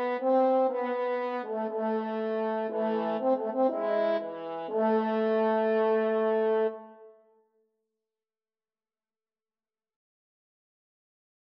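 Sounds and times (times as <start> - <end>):
French horn duet: 0.0 - 7.2.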